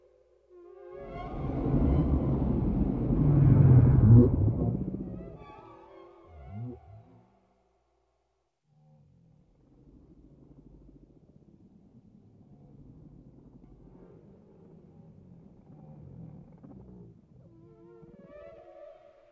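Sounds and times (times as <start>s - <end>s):
whale sweeping cry: 0.6s - 7.1s
whale groaning calls: 0.9s - 5.6s, 6.2s - 7.2s.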